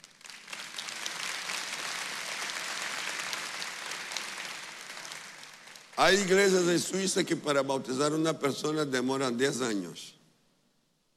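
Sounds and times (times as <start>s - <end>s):
audience applause: 0.0s - 6.3s
speech: 6.0s - 10.2s.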